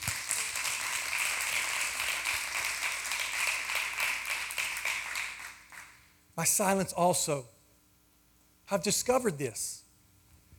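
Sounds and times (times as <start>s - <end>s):
audience hand clapping: 0.0s - 6.1s
speech: 6.4s - 7.6s, 8.7s - 9.8s.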